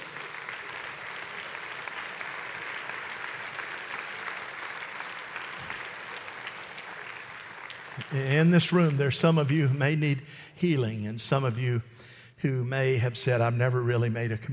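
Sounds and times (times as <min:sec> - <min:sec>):
audience hand clapping: 0:00.0 - 0:09.6
speech: 0:08.1 - 0:14.5.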